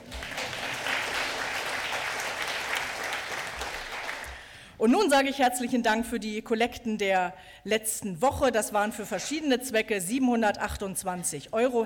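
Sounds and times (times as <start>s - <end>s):
audience applauding: 0.0s - 4.5s
speech: 4.8s - 11.8s.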